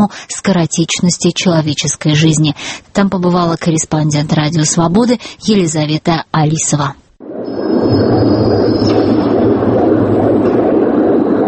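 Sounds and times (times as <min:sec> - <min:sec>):
speech: 0:00.0 - 0:07.0, 0:07.9 - 0:09.0
faint high whine: 0:07.2 - 0:11.4
recorded heartbeats of dozens of people: 0:07.2 - 0:11.4.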